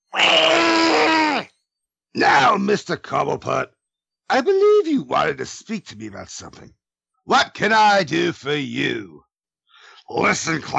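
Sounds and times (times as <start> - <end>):
man crying out in pain: 0.2 - 1.5
speech: 2.2 - 9.3, 10.1 - 10.7.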